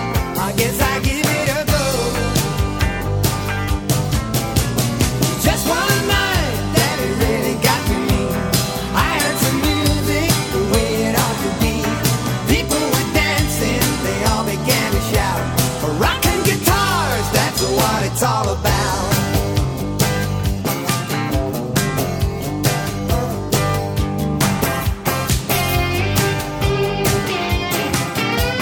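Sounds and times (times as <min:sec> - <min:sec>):
heavy rock guitars: 0:00.0 - 0:28.6.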